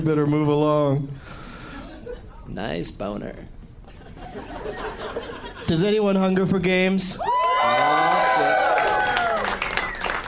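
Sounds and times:
speech: 0.0 - 1.4, 2.5 - 3.6, 4.4 - 7.3
laughter: 3.9 - 6.0
crowd cheering and whooping in Las Vegas: 7.2 - 10.2.

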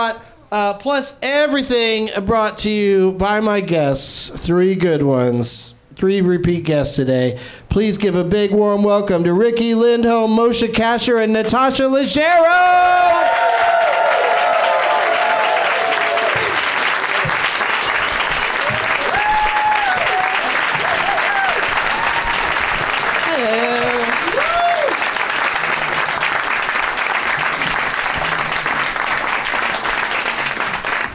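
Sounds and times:
speech: 0.0 - 13.3
long audience applause: 13.0 - 31.1.

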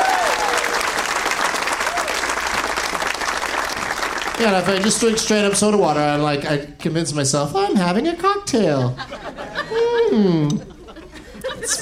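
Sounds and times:
faint whoops: 0.0 - 0.8, 1.8 - 2.2
audience applause for the staff: 0.0 - 6.0
speech: 4.4 - 10.7
laughter: 8.6 - 11.7.

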